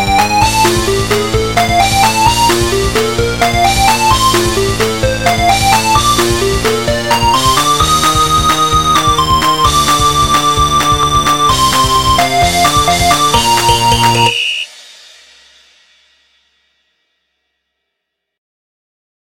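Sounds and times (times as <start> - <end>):
MIDI techno remix: 0.0 - 14.7.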